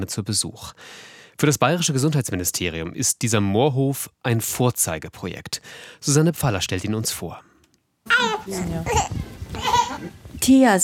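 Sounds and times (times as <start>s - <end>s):
speech: 0.0s - 10.8s
baby babbling in a converted ox stable on a farm: 8.1s - 10.2s.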